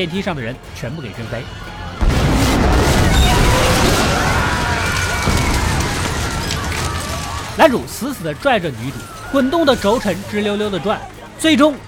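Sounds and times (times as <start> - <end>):
speech: 0.0 - 1.7, 7.6 - 11.8
explosion: 2.0 - 8.0.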